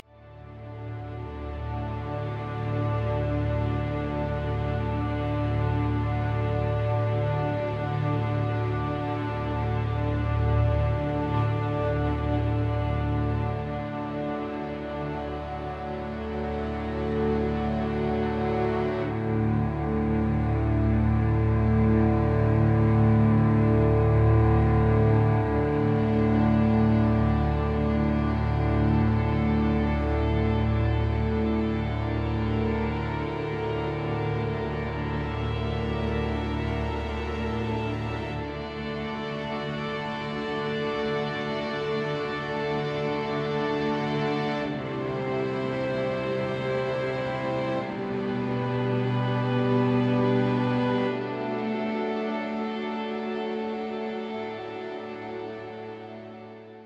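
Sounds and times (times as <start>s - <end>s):
string instruments in D: 0.0s - 56.8s.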